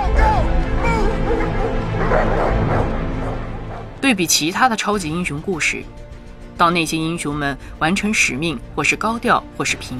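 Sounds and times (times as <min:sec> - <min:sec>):
police dogs barking in pursuit: 0:01.0 - 0:04.0
speech: 0:04.0 - 0:06.0, 0:06.6 - 0:09.9.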